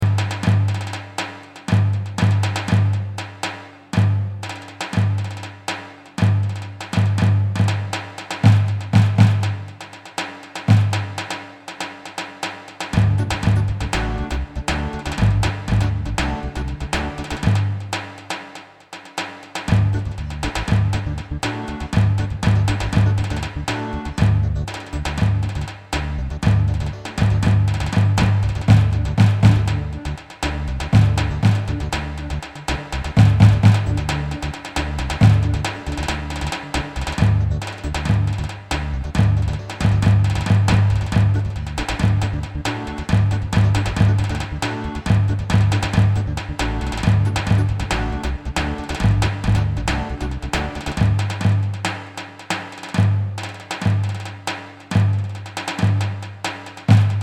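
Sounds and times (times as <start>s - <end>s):
asma davul drum: 0.0s - 57.2s.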